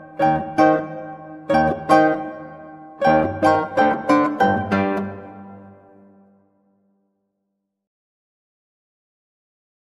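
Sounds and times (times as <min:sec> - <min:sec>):
fugue on guitar: 0:00.0 - 0:06.4.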